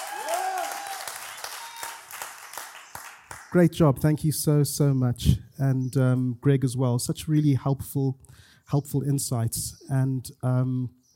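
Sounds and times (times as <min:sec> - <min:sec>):
whoop or whistle: 0:00.0 - 0:02.0
audience applause: 0:00.0 - 0:03.6
speech: 0:03.5 - 0:11.0.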